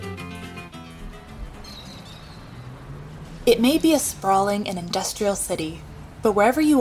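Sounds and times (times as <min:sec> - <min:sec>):
city birds calling in Sao Paulo Brazil: 0:00.8 - 0:05.0
speech: 0:03.5 - 0:06.7.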